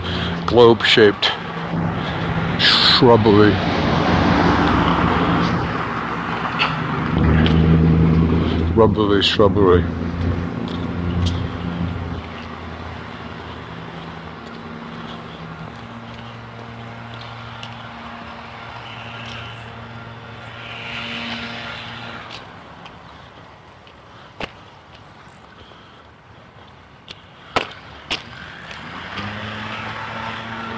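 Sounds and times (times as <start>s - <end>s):
leaf blower running outside: 0.0s - 23.5s, 27.9s - 30.7s
speech: 0.5s - 1.9s, 2.6s - 3.8s, 8.8s - 10.0s.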